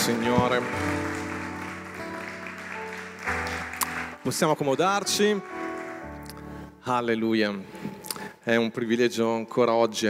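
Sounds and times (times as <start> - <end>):
speech: 0.0 - 1.2, 4.2 - 5.6, 6.8 - 7.8, 8.4 - 10.0
audience applause: 0.0 - 6.5.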